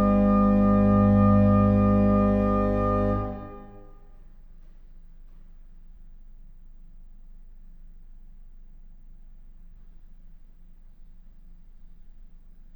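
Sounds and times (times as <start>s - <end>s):
organ music: 0.0s - 3.9s.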